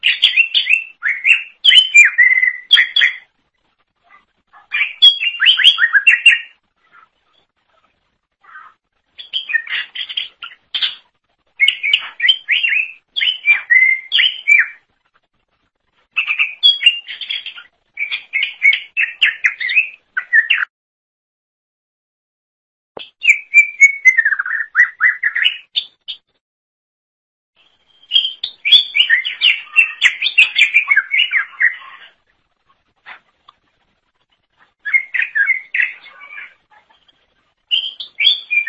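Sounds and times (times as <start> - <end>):
leafbird singing: 0.0 - 3.3, 4.5 - 7.5, 8.4 - 14.8, 16.2 - 20.7, 23.1 - 26.2, 27.6 - 32.1, 34.8 - 38.6.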